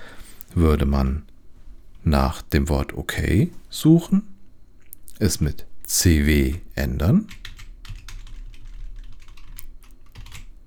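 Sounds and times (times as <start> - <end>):
speech: 0.5 - 1.3, 2.0 - 4.3, 5.2 - 7.4
typing on a computer keyboard in the Vim editor: 7.3 - 10.6.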